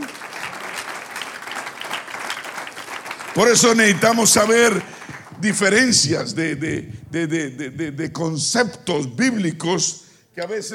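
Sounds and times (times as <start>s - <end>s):
audience clapping: 0.0s - 6.9s
speech: 3.4s - 10.7s.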